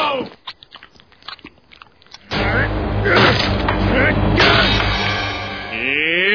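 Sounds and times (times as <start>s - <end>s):
Homer Simpson chewing and biting: 0.2s - 2.4s
loud dense burst: 2.3s - 6.2s.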